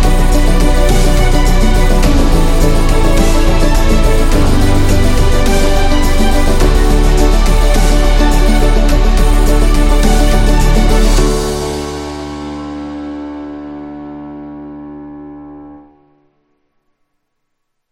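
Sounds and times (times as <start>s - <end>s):
epic dubstep corporate music: 0.0s - 13.4s.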